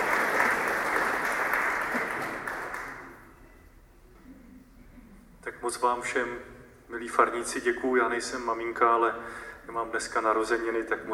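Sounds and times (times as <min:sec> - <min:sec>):
audience applauding: 0:00.0 - 0:03.2
speech: 0:05.7 - 0:11.1.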